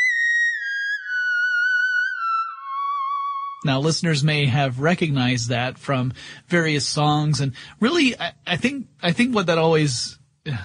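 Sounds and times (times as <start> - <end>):
theremin playing a smooth electronic tone: 0.0 - 3.7
speech: 3.6 - 10.6.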